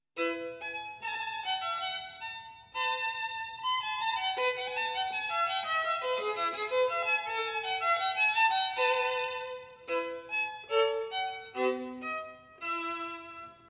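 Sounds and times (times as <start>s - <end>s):
violin: 0.2s - 13.6s.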